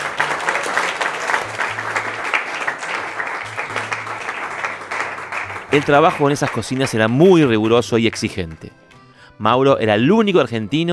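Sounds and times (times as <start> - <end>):
audience applause: 0.0 - 7.8
speech: 5.7 - 8.8, 9.4 - 10.9.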